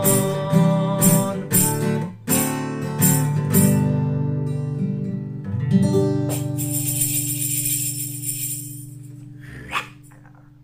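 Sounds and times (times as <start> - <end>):
acoustic children's song: 0.0 - 5.0, 5.9 - 9.2.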